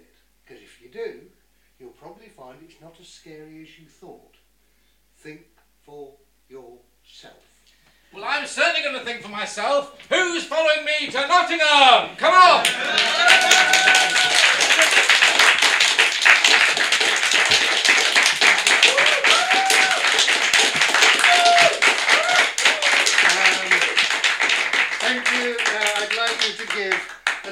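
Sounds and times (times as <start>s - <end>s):
speech: 2.4s - 4.4s, 5.2s - 7.5s, 8.1s - 15.1s
audience applause: 12.6s - 27.5s.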